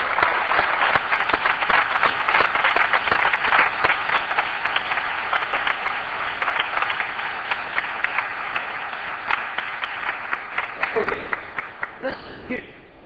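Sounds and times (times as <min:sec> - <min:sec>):
audience clapping: 0:00.0 - 0:12.6.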